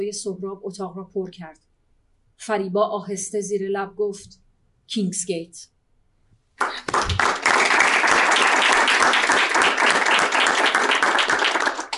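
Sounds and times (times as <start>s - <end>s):
speech: 0.0s - 1.7s, 2.4s - 5.7s, 6.6s - 7.3s
audience applause: 6.6s - 11.9s.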